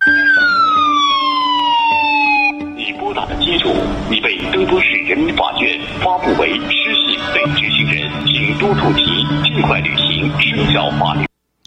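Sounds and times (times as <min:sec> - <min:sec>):
siren-like phone alert for low-credit caller: 0:00.0 - 0:02.7
voices: 0:02.8 - 0:11.6.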